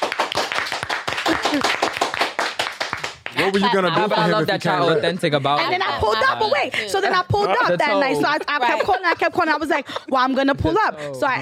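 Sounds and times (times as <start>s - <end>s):
audience clapping hands: 0.0s - 4.3s
laughter: 1.3s - 1.9s, 3.4s - 10.9s
speech: 1.5s - 1.8s, 3.4s - 11.3s.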